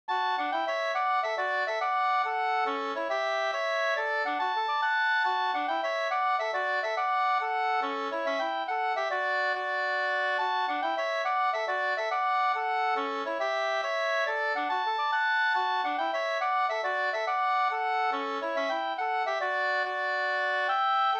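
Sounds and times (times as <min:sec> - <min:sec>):
mazurka: 0:00.1 - 0:21.1.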